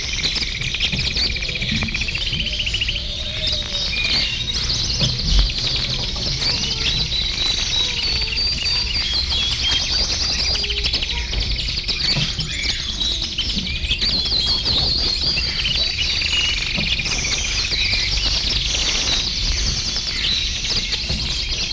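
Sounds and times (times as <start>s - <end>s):
birds singing in a dense chorus of high chirps and twitters: 0.0s - 21.7s.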